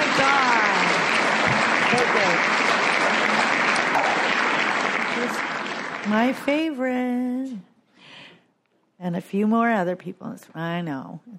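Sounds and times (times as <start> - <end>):
audience applause: 0.0 - 6.8
speech: 6.1 - 7.7, 9.0 - 11.3.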